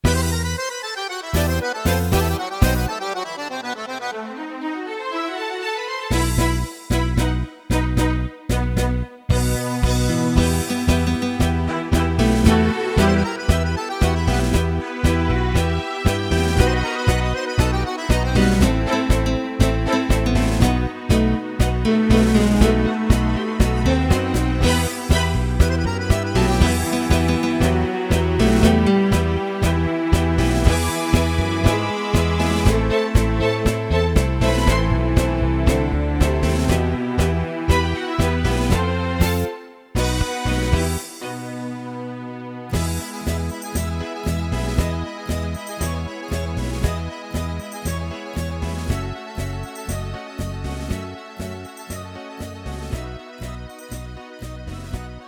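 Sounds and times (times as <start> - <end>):
express tango music: 0.0 - 55.2.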